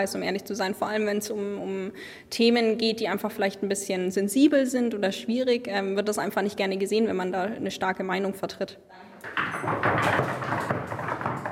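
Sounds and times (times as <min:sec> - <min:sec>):
speech: 0:00.0 - 0:10.3
knocking applause on a tabletop: 0:09.3 - 0:11.5.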